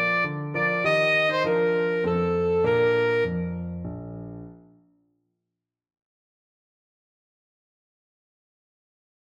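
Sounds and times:
alto saxophone: 0:00.0 - 0:03.6.

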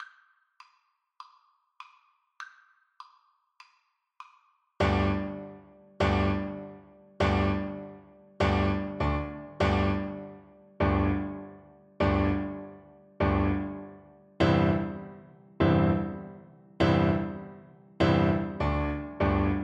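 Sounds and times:
cello: 0:04.8 - 0:16.1, 0:18.0 - 0:19.6.

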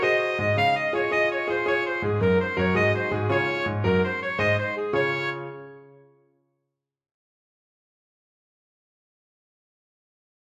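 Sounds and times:
alto saxophone: 0:00.0 - 0:05.9.

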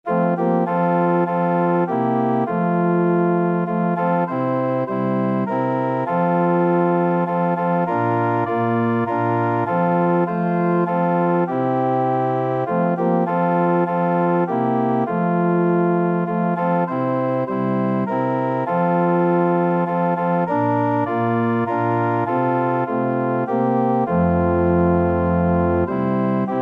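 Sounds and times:
organ: 0:00.1 - 0:26.6.

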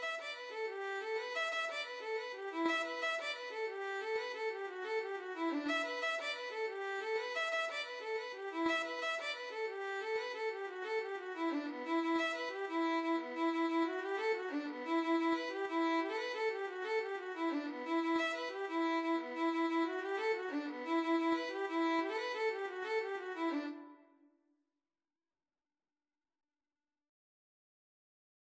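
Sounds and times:
violin: 0:00.0 - 0:24.0.

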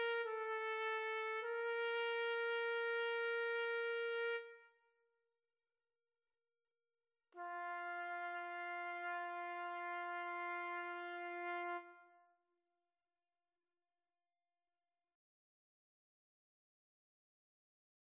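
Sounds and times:
trumpet playing a pavane: 0:00.0 - 0:04.7, 0:07.4 - 0:12.2.

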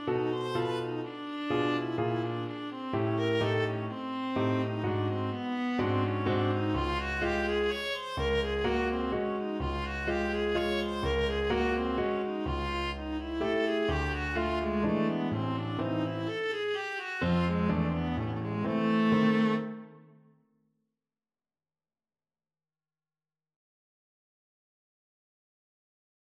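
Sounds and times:
viola playing a mazurka: 0:00.0 - 0:20.1.

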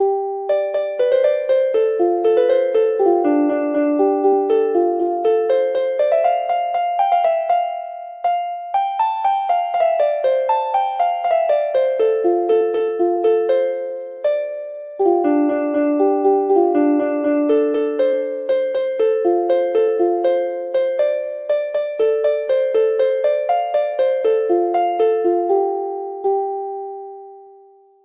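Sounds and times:
harp: 0:00.0 - 0:27.8.

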